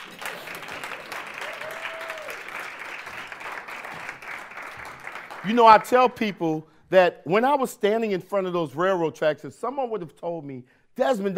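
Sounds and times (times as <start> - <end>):
crowd applause: 0.0 - 6.1
speech: 5.4 - 11.3.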